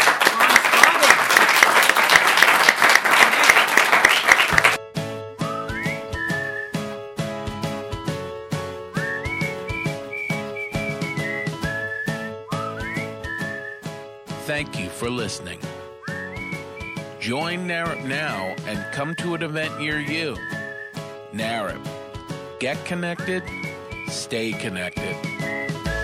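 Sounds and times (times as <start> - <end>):
loud audience applause: 0.0 - 4.8
melodic music with bright whistle-like tones over a rhythmic beat: 5.1 - 26.0
speech: 14.6 - 15.7, 17.3 - 20.6, 21.4 - 21.9, 22.6 - 25.5.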